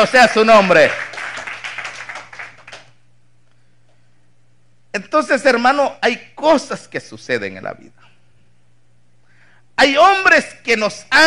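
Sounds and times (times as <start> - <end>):
speech: 0.0 - 1.1, 5.0 - 8.1, 9.8 - 11.2
audience clapping: 0.0 - 3.0.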